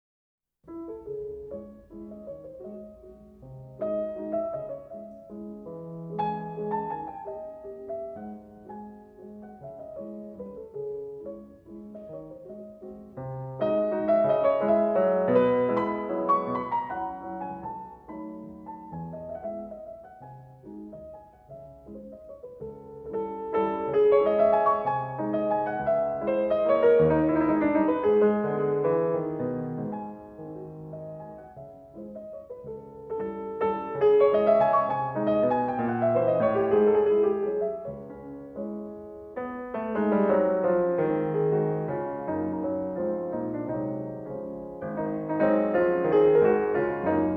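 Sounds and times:
piano mazurka in C sharp minor: 0.6s - 47.3s.

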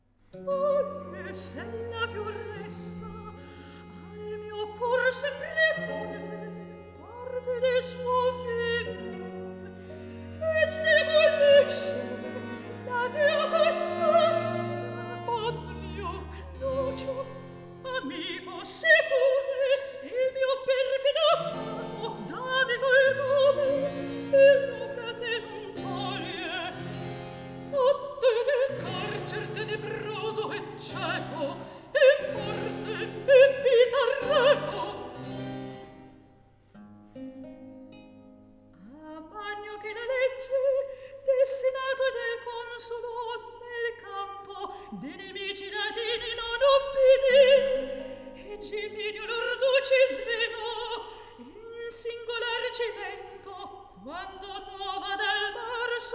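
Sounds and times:
recitative singing: 0.4s - 36.2s, 39.0s - 56.1s.

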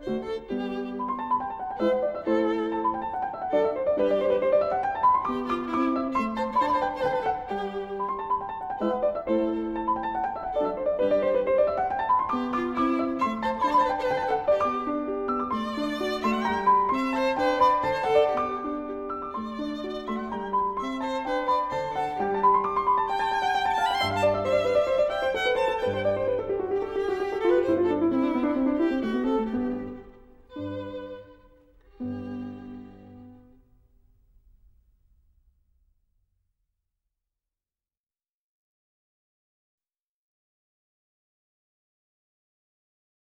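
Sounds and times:
violin sonata in G: 0.0s - 33.9s.

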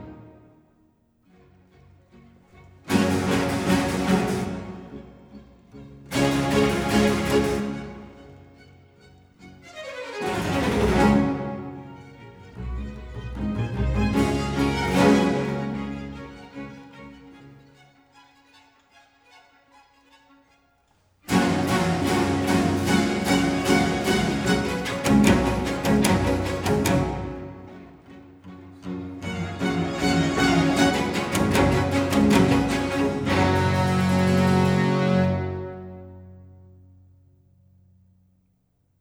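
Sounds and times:
orchestral sinfonia allegro movement: 0.0s - 0.7s, 2.7s - 8.9s, 9.6s - 18.4s, 21.3s - 36.8s.

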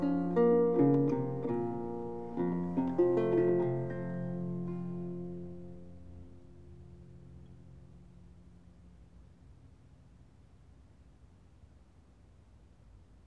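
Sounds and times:
lute prelude: 0.0s - 7.8s.

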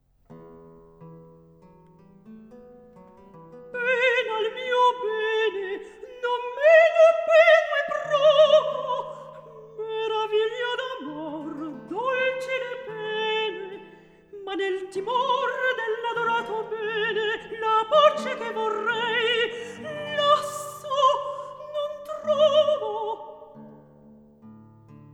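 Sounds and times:
recitative singing: 3.8s - 23.7s.

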